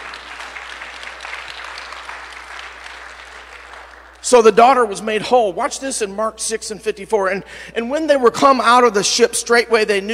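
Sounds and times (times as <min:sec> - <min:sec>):
audience hand clapping: 0:00.0 - 0:04.6
speech: 0:04.3 - 0:10.1.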